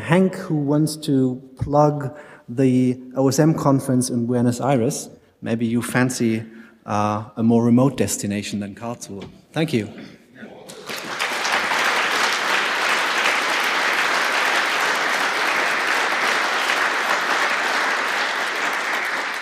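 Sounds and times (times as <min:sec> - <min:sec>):
speech: 0:00.1 - 0:10.2
applause: 0:10.7 - 0:19.4.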